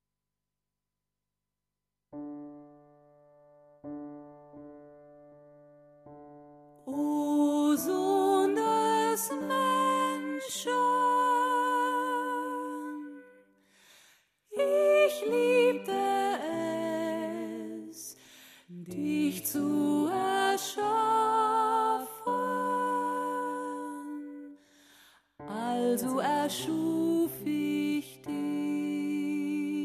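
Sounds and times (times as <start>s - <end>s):
soprano in choral music: 6.9s - 13.6s, 14.5s - 24.8s, 25.4s - 29.8s.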